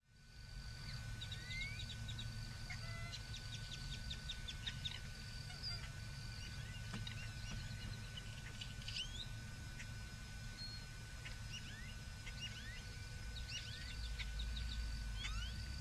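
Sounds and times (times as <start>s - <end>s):
many birds chirping in the morning in Bexar County, Texas: 0.8s - 15.7s.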